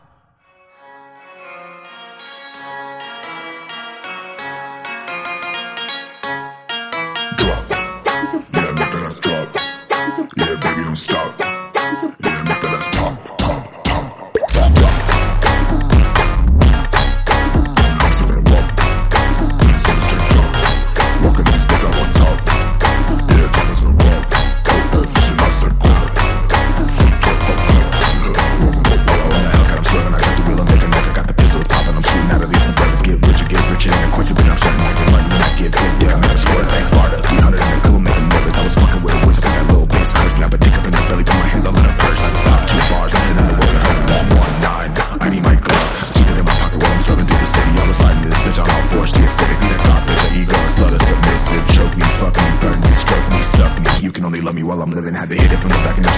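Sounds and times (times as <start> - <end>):
phonk music: 1.2 - 56.1.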